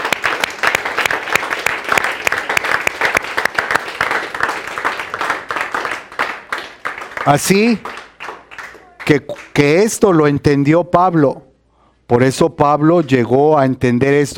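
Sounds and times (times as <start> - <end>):
audience applause: 0.0 - 9.6
speech: 7.3 - 7.9, 9.1 - 11.5, 12.1 - 14.3.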